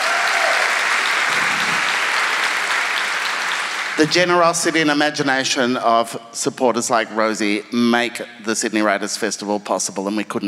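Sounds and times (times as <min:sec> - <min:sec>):
audience applause: 0:00.0 - 0:04.7
speech: 0:04.0 - 0:10.4.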